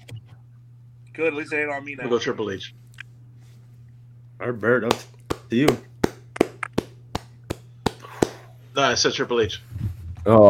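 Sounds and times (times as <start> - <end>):
speech: 1.2 - 2.8, 4.4 - 5.9, 8.8 - 10.4
hand clapping: 4.8 - 8.5.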